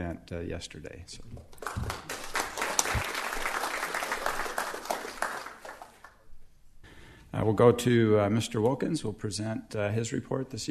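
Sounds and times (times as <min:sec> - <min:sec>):
speech: 0:00.0 - 0:02.2, 0:07.4 - 0:10.6
audience applause: 0:01.6 - 0:06.2.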